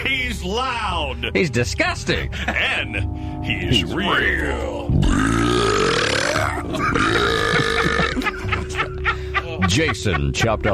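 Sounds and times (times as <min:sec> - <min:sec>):
speech: 0:00.4 - 0:05.6, 0:09.7 - 0:10.7
laughter: 0:02.2 - 0:03.1, 0:06.4 - 0:10.7
loud drawn-out human burp from swallowed air: 0:04.9 - 0:08.3.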